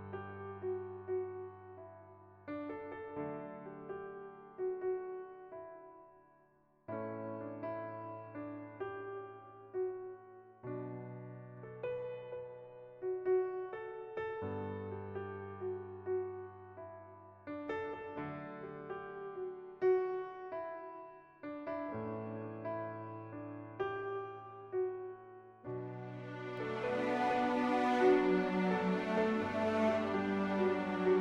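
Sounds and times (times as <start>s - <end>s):
piano: 0.0s - 31.1s
string orchestra: 25.8s - 31.1s.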